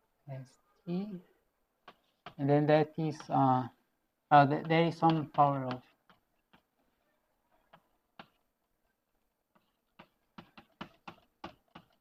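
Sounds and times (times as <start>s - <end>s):
speech: 0.3s - 1.3s, 2.4s - 5.9s
someone writing with a pen or chalk: 1.8s - 2.4s, 4.6s - 6.8s, 7.6s - 8.4s, 9.5s - 11.9s.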